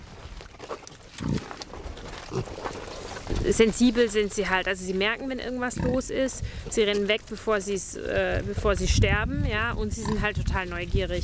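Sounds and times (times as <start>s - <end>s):
sow grunting: 1.2s - 1.6s, 2.2s - 3.5s, 5.7s - 6.1s
speech: 2.3s - 2.8s, 3.4s - 11.2s.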